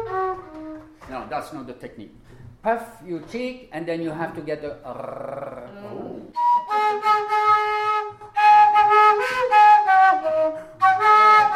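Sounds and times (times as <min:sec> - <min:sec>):
Andean wooden tarka flute playing with harmonics: 0:00.0 - 0:01.4, 0:06.3 - 0:11.5
speech: 0:01.1 - 0:07.8.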